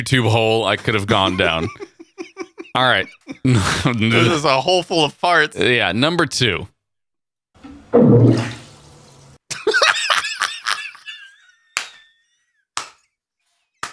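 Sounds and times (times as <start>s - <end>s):
speech: 0.0s - 1.9s, 2.8s - 6.7s, 7.9s - 8.5s
laughter: 0.4s - 5.4s, 9.5s - 12.4s
iguana in a bathtub watery whoosh: 7.6s - 9.4s.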